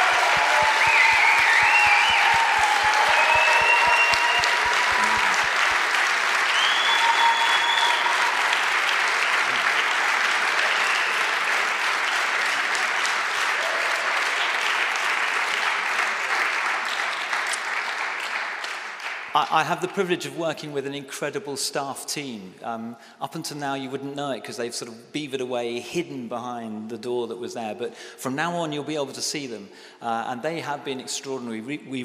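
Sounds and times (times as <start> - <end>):
audience applause: 0.0 - 19.5
speech: 19.5 - 32.0.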